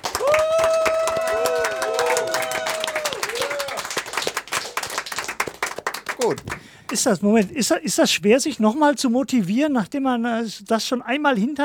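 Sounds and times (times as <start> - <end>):
crowd applause: 0.0 - 6.7
wavering whoop: 0.1 - 3.9
speech: 6.3 - 11.6.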